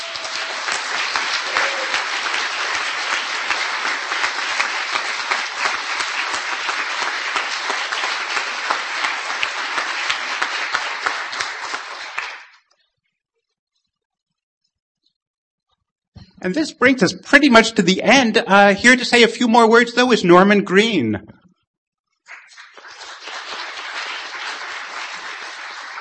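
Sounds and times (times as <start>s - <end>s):
audience applause: 0.0s - 12.6s, 22.3s - 25.9s
speech: 16.5s - 21.4s.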